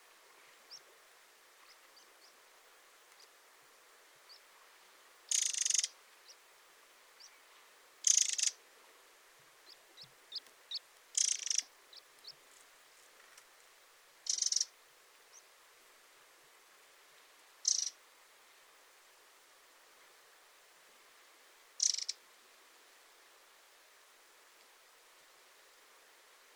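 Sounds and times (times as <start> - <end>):
Eurasian wren calling with ticking and churring rattles: 5.3 - 6.4, 8.0 - 8.6, 9.6 - 12.4, 14.2 - 14.7, 17.6 - 18.0, 21.8 - 22.2.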